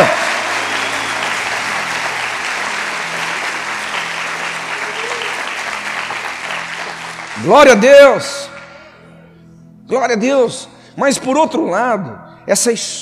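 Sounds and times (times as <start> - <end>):
audience applauding: 0.0 - 7.9
speech: 7.4 - 8.4, 9.9 - 13.0.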